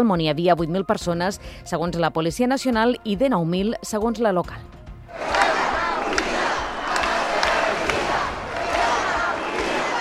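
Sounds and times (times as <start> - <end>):
speech: 0.0 - 5.4
protest crowd shouting: 5.1 - 9.9.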